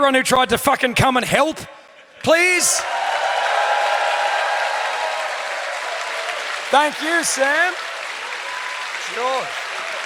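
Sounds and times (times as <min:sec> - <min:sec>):
speech: 0:00.0 - 0:03.1, 0:06.7 - 0:07.9, 0:09.1 - 0:09.6
sustained applause from a large audience: 0:02.3 - 0:10.0.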